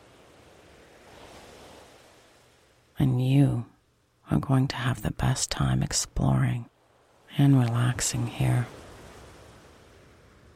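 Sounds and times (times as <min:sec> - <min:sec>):
gentle ocean waves washing onto an island shore: 0:00.0 - 0:03.0, 0:06.2 - 0:10.5
speech: 0:04.3 - 0:06.7, 0:07.4 - 0:08.8.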